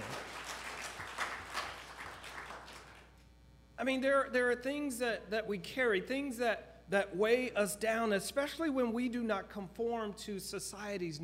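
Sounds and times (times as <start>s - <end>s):
applause: 0.0s - 3.2s
speech: 3.8s - 11.2s.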